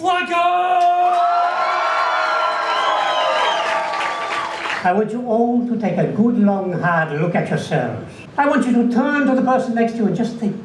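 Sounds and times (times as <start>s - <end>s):
audience cheering: 0.6s - 4.8s
audience applause: 1.1s - 4.8s
speech: 4.8s - 10.6s.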